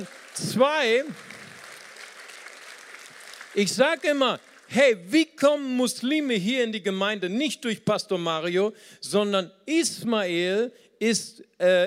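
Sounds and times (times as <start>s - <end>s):
speech: 0.0s - 1.3s, 3.6s - 11.8s
applause: 0.0s - 5.0s.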